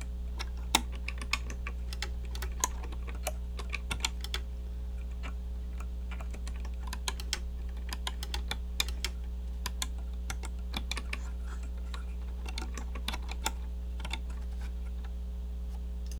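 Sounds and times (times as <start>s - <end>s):
keyboard typing during a typing test: 0.0s - 15.1s.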